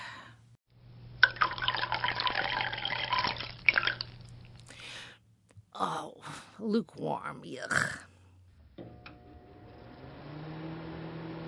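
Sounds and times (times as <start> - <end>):
coffee pouring into a cup: 1.2 - 4.7
speech: 5.8 - 8.1.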